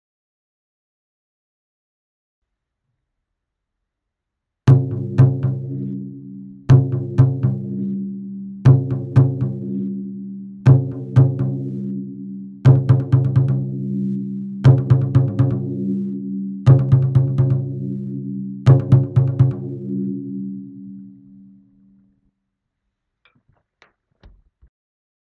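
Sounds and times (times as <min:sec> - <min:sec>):
taiko drums: 0:04.7 - 0:05.9, 0:06.7 - 0:07.8, 0:08.7 - 0:09.8, 0:10.7 - 0:11.8, 0:12.7 - 0:14.0, 0:14.6 - 0:15.9, 0:16.7 - 0:18.0, 0:18.7 - 0:20.0.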